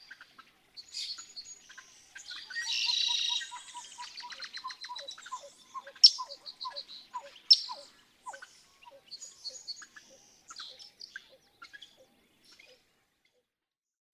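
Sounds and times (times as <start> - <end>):
Pied-billed Grebe calling: 2.2 - 12.8.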